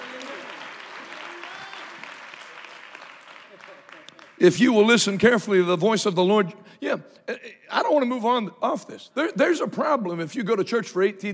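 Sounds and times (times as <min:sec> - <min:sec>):
audience clapping hands: 0:00.0 - 0:05.2
speech: 0:04.4 - 0:11.3.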